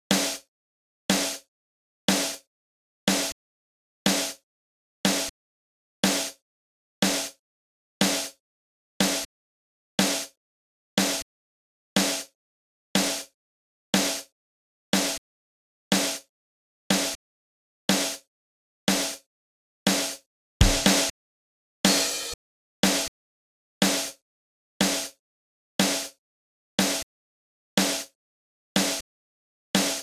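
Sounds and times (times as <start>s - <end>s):
drums: 0.1s - 0.5s, 1.1s - 1.5s, 2.1s - 2.5s, 3.1s - 3.4s, 4.1s - 4.4s, 5.0s - 5.3s, 6.0s - 6.4s, 7.0s - 7.4s, 8.0s - 8.4s, 9.0s - 9.3s, 10.0s - 10.4s, 11.0s - 11.3s, 12.0s - 12.4s, 13.0s - 13.3s, 14.0s - 14.3s, 15.0s - 15.2s, 15.9s - 16.3s, 16.9s - 17.2s, 17.9s - 18.3s, 18.9s - 19.3s, 19.9s - 21.2s, 21.8s - 23.1s, 23.8s - 24.2s, 24.8s - 25.2s, 25.8s - 26.2s, 26.8s - 27.1s, 27.8s - 28.2s, 28.8s - 29.0s, 29.8s - 30.0s.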